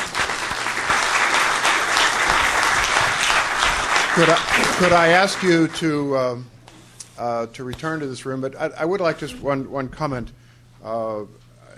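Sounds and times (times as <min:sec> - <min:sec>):
audience applause: 0:00.0 - 0:06.1
speech: 0:04.2 - 0:06.6, 0:07.2 - 0:11.4.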